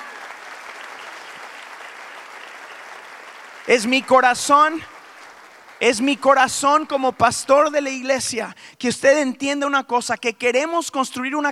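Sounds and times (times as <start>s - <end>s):
audience applause: 0.0s - 6.8s
speech: 3.7s - 4.9s, 5.8s - 11.4s.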